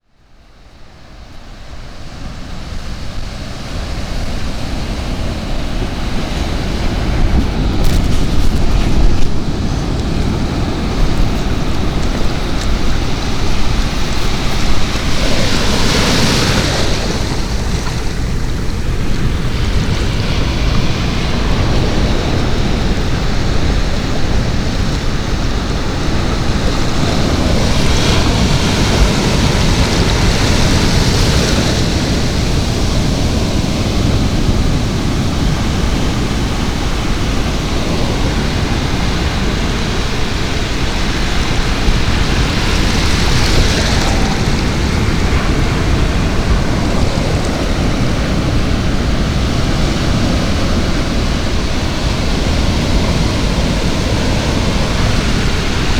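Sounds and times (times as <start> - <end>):
Atlantic City ocean waves: 0.3 - 55.9.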